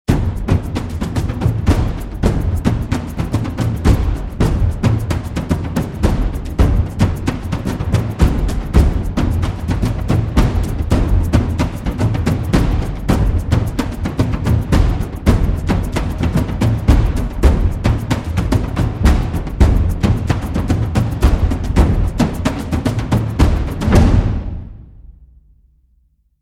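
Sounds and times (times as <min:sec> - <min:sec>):
hybrid drums: 0:00.1 - 0:25.2.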